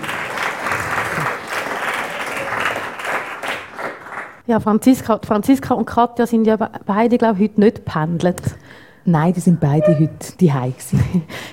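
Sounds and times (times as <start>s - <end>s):
crowd applauding: 0.0s - 4.4s
speech: 4.5s - 11.5s.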